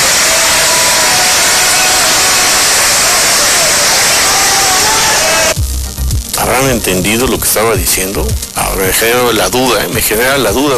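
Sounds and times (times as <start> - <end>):
audience applause: 0.0 - 5.6
speech: 6.6 - 10.7.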